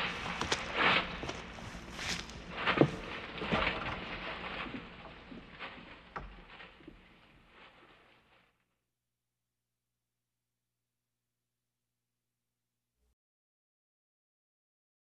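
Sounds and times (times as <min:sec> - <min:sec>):
patrol walking: 0:00.0 - 0:08.3.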